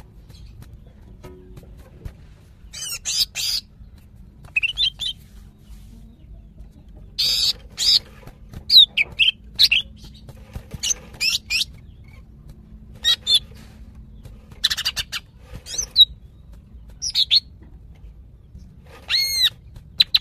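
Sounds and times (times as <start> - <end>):
female greater green leafbird calling: 2.6 - 6.3, 7.2 - 12.3, 13.0 - 13.6, 14.2 - 17.5, 18.6 - 20.2.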